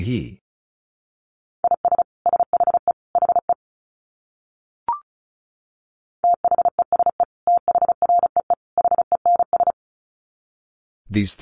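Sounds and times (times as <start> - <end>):
fast Morse code tones: 1.6 - 3.6, 6.2 - 9.8.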